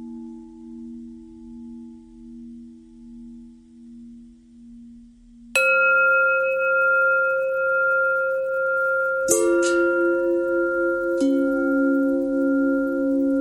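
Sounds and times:
long bell ringing: 0:05.6 - 0:13.4.

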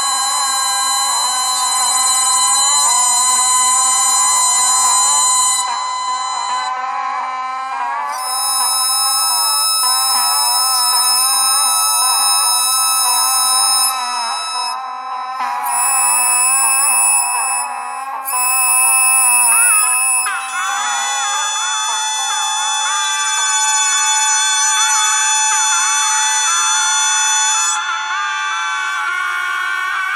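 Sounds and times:
bagpipe: 0:00.0 - 0:30.1.

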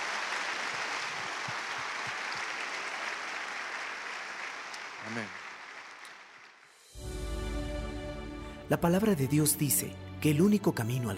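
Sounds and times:
audience applause: 0:00.0 - 0:06.7
speech: 0:05.0 - 0:05.4, 0:08.7 - 0:11.1.

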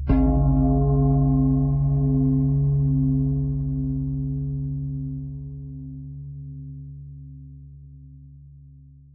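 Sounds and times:
pentatonic bell melody: 0:00.2 - 0:06.6.

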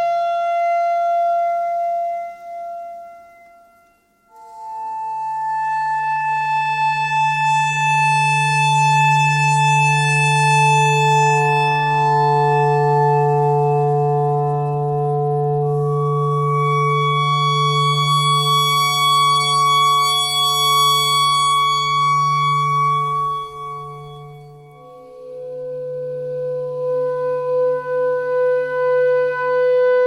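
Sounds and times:
clarinet notes: 0:00.0 - 0:30.0.

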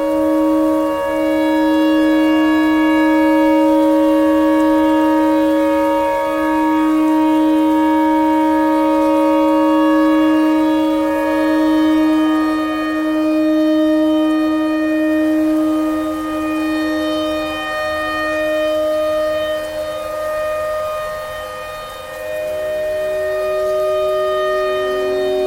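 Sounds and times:
clarinet notes: 0:00.0 - 0:25.4
tornado siren: 0:00.0 - 0:25.4.

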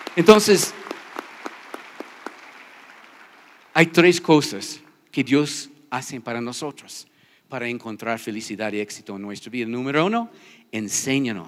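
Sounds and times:
church congregation hand claps during a service: 0:00.0 - 0:03.7
speech: 0:00.2 - 0:01.0, 0:03.8 - 0:11.4.

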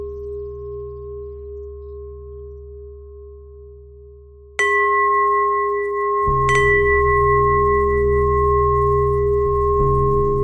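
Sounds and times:
bells ringing: 0:04.6 - 0:10.2.

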